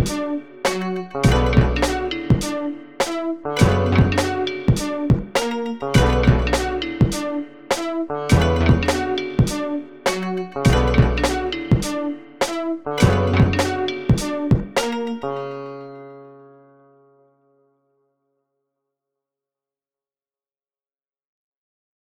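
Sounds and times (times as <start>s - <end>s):
dystopia type beat: 0.0s - 15.0s.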